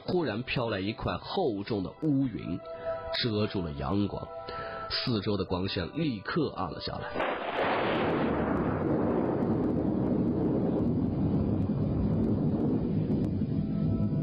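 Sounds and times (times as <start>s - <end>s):
speech: 0.1s - 8.3s
loud thunder rumbling: 7.2s - 14.2s.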